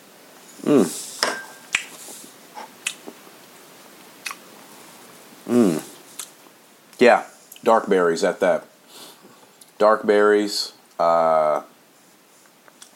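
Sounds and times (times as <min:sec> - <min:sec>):
speech: 0:00.6 - 0:01.0, 0:07.0 - 0:08.7, 0:09.8 - 0:11.7
person sipping a drink: 0:00.6 - 0:01.2, 0:05.5 - 0:06.3.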